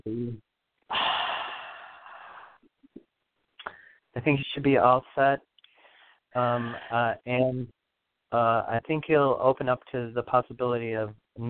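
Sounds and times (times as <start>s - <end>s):
faint breathy sounds: 0.1s - 2.7s, 3.6s - 4.1s, 5.6s - 7.6s
big breath in through the nose and out the mouth: 0.9s - 2.6s, 5.7s - 7.0s
speech: 4.2s - 5.5s, 6.3s - 11.4s.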